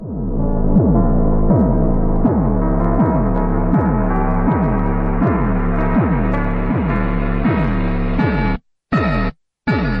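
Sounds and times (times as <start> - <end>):
heavily slowed-down music: 0.0 - 9.9.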